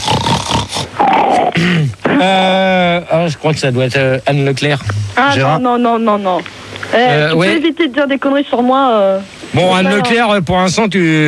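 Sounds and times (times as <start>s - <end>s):
loud harsh sniffing and snorting: 0.0s - 2.2s
throaty grunting tones: 0.0s - 2.6s
speech: 3.2s - 11.2s.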